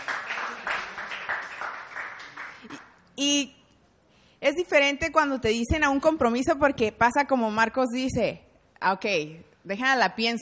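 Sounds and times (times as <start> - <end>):
group clapping: 0.0 - 3.1
speech: 3.2 - 3.6, 4.4 - 10.3.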